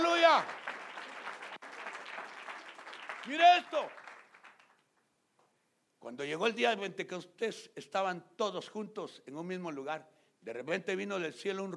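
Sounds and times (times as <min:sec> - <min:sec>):
audience applause: 0:00.0 - 0:04.8
speech: 0:00.4 - 0:00.6, 0:03.2 - 0:04.0, 0:06.0 - 0:11.7.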